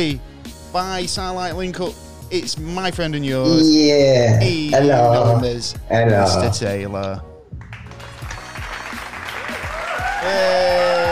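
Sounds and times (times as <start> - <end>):
speech: 0.0 - 7.3, 10.2 - 11.0
audience applause: 7.7 - 11.0.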